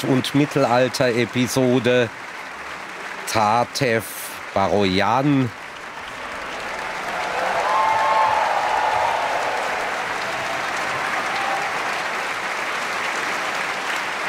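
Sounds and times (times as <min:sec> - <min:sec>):
speech: 0:00.0 - 0:02.3, 0:03.3 - 0:05.6
opera audience applauding at a curtain call: 0:00.0 - 0:14.2
tonal cheer or whistle: 0:06.1 - 0:12.2.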